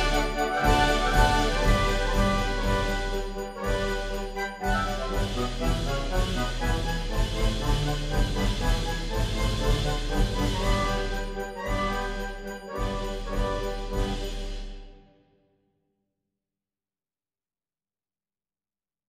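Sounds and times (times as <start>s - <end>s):
orchestra playing a march: 0.0s - 14.9s.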